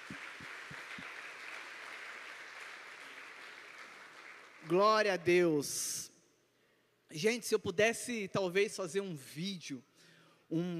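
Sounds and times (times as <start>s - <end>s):
audience applause: 0.0s - 4.7s
speech: 4.7s - 6.1s, 7.1s - 9.9s, 10.5s - 10.7s.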